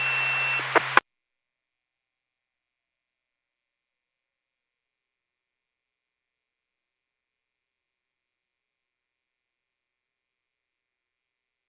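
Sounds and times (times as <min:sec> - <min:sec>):
siren: 0:00.0 - 0:01.0.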